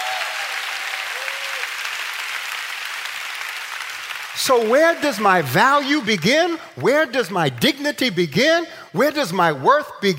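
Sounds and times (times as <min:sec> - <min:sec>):
audience clapping as offering to God: 0:00.0 - 0:08.1
speech: 0:04.4 - 0:10.1.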